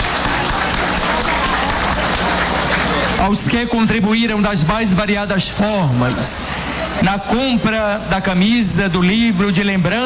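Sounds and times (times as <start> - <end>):
warm round of applause: 0.0 - 4.1
speech: 3.2 - 10.0.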